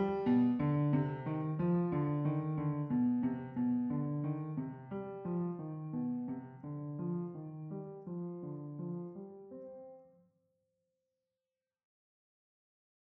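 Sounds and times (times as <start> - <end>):
piano: 0.0 - 10.3.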